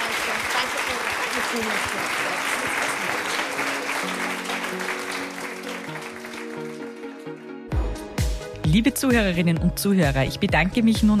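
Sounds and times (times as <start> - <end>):
applause for two women guests at the close of a talk: 0.0 - 7.8
speech: 1.5 - 3.3, 8.7 - 11.1.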